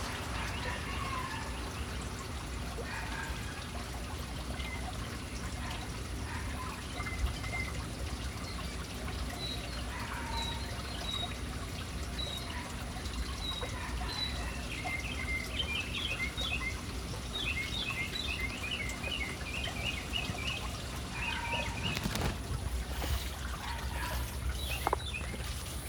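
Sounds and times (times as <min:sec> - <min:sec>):
running water: 0:00.0 - 0:25.8
birds chirping: 0:13.3 - 0:25.8.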